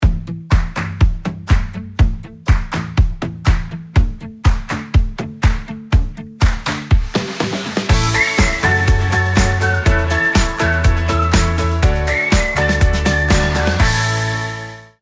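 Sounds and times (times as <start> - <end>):
music: 0.0 - 15.0.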